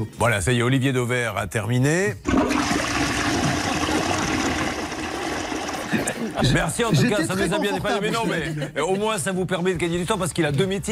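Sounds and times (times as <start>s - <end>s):
speech: 0.0s - 3.0s, 6.4s - 10.9s
toilet flushing: 2.2s - 6.7s
laughter: 5.8s - 9.1s.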